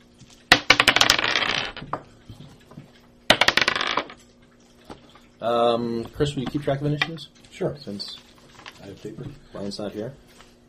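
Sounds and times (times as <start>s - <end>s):
dice clattering as players roll for initiative in a Pathfinder tabletop game: 0.5s - 1.8s, 3.3s - 4.2s
speech: 5.4s - 10.2s.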